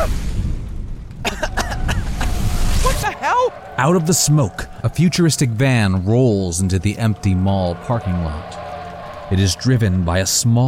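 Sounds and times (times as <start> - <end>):
explosion: 0.0 - 3.1
speech: 3.3 - 8.6, 9.3 - 10.6.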